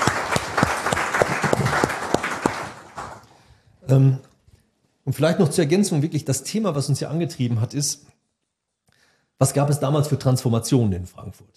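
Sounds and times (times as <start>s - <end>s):
audience applause: 0.0s - 3.3s
speech: 3.9s - 4.3s, 5.0s - 8.1s, 9.4s - 11.5s.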